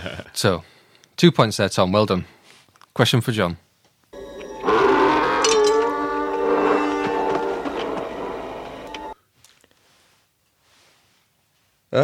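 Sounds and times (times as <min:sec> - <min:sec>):
speech: 0:00.0 - 0:02.4, 0:03.0 - 0:03.6
sand people braying howling cry sound effect: 0:04.4 - 0:09.1.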